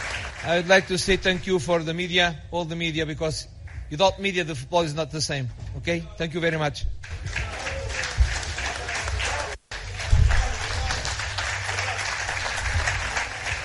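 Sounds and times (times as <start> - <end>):
journalists applauding: 0.0 - 1.4, 7.0 - 13.6
speech: 0.4 - 7.5.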